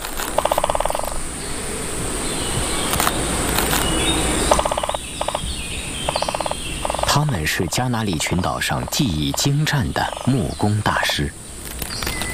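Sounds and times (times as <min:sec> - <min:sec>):
great spotted woodpecker pecking at a tree trunk: 0:00.0 - 0:01.2, 0:04.5 - 0:11.2
faint high whine: 0:00.0 - 0:12.3
steady rushing hiss: 0:00.0 - 0:12.3
speech: 0:07.2 - 0:11.4.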